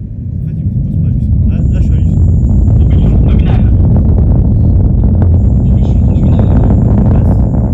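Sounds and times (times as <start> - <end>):
large liquid hydrogen and liquid oxygen rocket engine roaring: 0.0 - 7.7
two solid-fuel rocket boosters crackling: 1.2 - 7.7.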